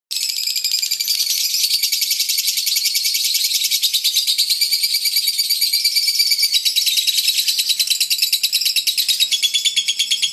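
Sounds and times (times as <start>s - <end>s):
Oriental magpie-robin singing: 0.1s - 10.3s.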